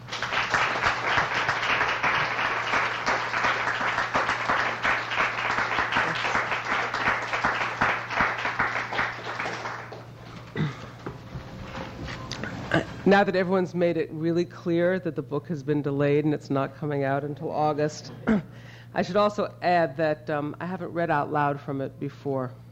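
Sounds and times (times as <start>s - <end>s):
audience applause welcoming author Amy Bloom: 0.0s - 13.0s
low steady hum: 0.0s - 22.6s
speech: 13.1s - 22.6s.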